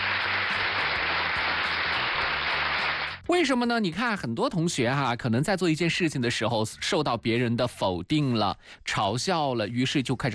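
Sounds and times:
applause: 0.0 - 3.3
speech: 3.3 - 10.3.

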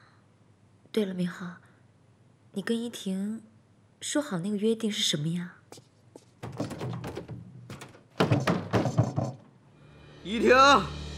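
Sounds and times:
speech: 1.0 - 1.6, 2.6 - 5.9, 10.3 - 11.0
heavy knocking on a door: 6.4 - 9.5.

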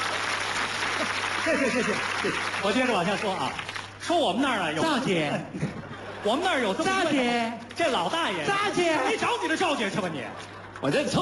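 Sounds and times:
audience applause: 0.0 - 3.9
laughter: 0.8 - 2.6, 4.8 - 7.2, 8.8 - 11.2
speech: 1.4 - 11.2.

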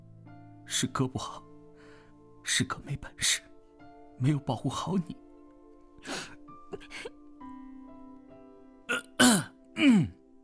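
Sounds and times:
speech: 0.7 - 1.5, 2.5 - 3.5, 4.2 - 5.2, 6.0 - 7.2, 9.8 - 10.2
man coughing: 8.9 - 10.2.

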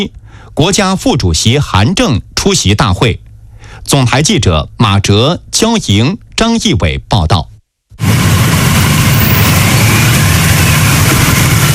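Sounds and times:
speech: 0.0 - 3.2, 3.8 - 7.5
motorcade with motorcycle escorts rumbling past: 8.0 - 11.7.

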